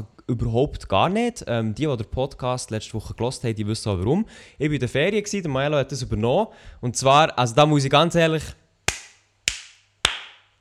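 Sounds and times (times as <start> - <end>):
speech: 0.0 - 8.6
hand clapping: 8.9 - 10.5.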